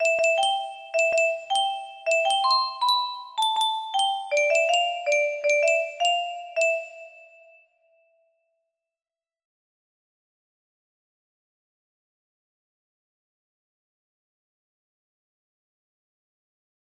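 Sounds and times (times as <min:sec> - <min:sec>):
music box melody: 0:00.0 - 0:07.7.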